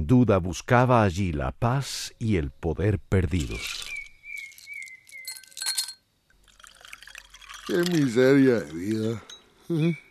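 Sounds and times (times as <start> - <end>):
speech: 0.0 - 3.9, 7.7 - 10.0
liquor being poured: 3.3 - 9.4
glass clinking against a whisky bottle: 4.5 - 6.0, 6.7 - 9.5.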